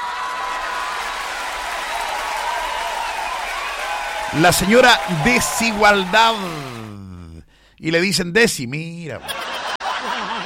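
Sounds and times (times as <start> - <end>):
applause: 0.0 - 6.9
speech: 4.3 - 6.8, 7.8 - 9.5
laughter: 4.3 - 7.0, 9.2 - 10.4.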